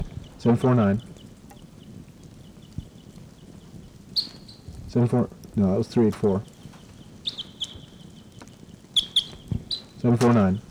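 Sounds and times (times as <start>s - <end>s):
speech: 0.4s - 1.1s, 5.0s - 6.5s, 10.0s - 10.6s
wild birds chirping: 4.2s - 4.7s, 7.2s - 8.3s, 9.0s - 10.0s.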